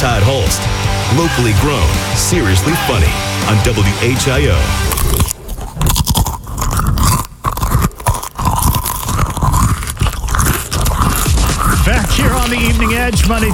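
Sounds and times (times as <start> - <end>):
speech: 0.0 - 5.3, 12.2 - 13.5
munching crunchy cheese crackers: 4.4 - 13.5.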